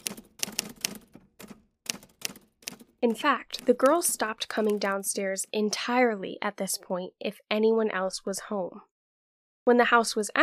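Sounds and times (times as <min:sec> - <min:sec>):
typewriter keys clacking: 0:00.0 - 0:05.0
speech: 0:03.0 - 0:08.9, 0:09.6 - 0:10.4.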